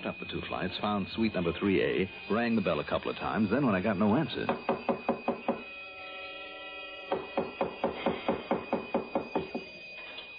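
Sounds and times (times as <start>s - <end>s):
speech: 0.0s - 4.9s
pounding on a door: 4.5s - 5.7s, 7.1s - 9.7s.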